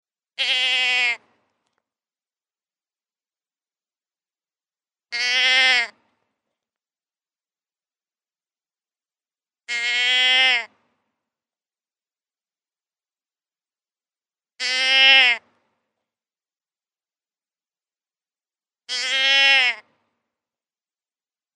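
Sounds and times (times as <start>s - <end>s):
deer bleating: 0.4s - 1.3s, 5.1s - 6.0s, 9.7s - 10.8s, 14.6s - 15.5s, 18.9s - 19.9s.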